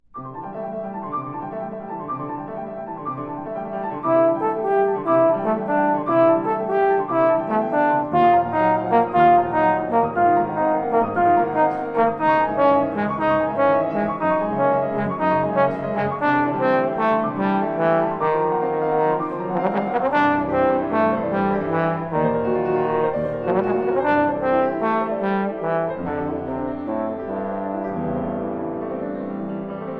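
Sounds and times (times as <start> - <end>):
piano: 0.0 - 29.9
trombone: 3.9 - 28.8.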